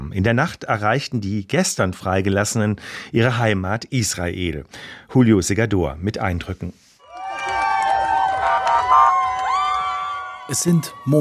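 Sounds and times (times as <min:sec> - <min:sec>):
speech: 0:00.1 - 0:06.8, 0:10.5 - 0:11.1
roadside crowd cheering as convoy passes: 0:07.0 - 0:11.1.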